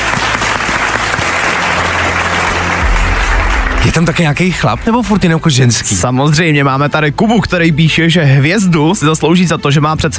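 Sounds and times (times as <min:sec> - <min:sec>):
applause sound effect: 0:00.0 - 0:05.6
speech: 0:03.8 - 0:10.1.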